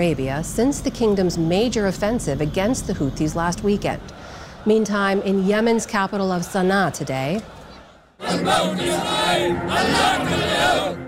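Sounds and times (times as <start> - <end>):
speech: 0.0 - 7.6, 8.2 - 11.0
large crowd in Sana'a, Yemen chanting in unison in support of the Houthis: 4.6 - 11.0.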